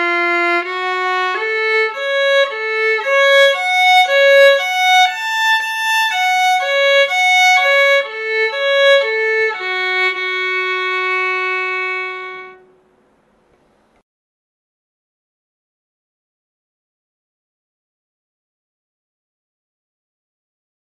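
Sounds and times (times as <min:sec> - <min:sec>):
scale arpeggios in F# minor: 0:00.0 - 0:12.8.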